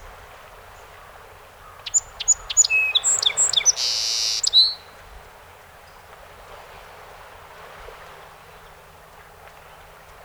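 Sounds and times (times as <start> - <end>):
song sparrow singing: 1.6 - 4.9.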